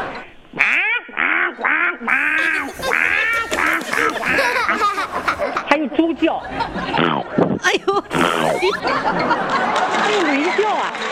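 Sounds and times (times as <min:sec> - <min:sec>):
voice imitating duck quacks: 0:00.0 - 0:05.4, 0:07.0 - 0:08.8
laughter: 0:00.0 - 0:11.0
speech: 0:05.8 - 0:11.1.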